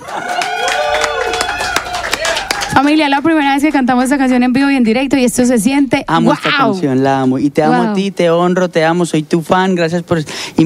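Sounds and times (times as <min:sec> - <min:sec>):
crowd cheering and shouting: 0:00.0 - 0:02.9
audience applause: 0:00.0 - 0:03.0
speech: 0:02.8 - 0:10.6.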